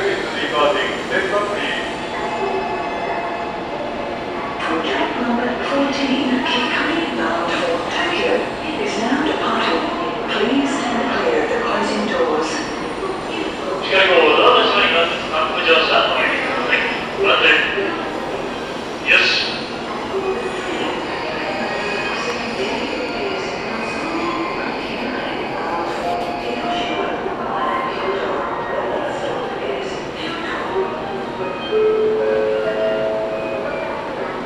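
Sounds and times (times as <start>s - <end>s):
passengers chattering aboard Tokaido Shinkansen Kodama unreserved car: 0.0s - 34.4s.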